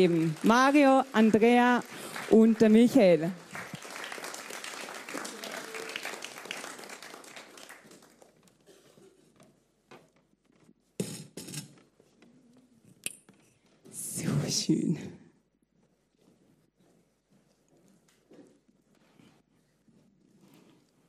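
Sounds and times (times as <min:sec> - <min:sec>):
speech: 0:00.0 - 0:03.4, 0:14.7 - 0:15.2
crowd applause: 0:00.0 - 0:08.4.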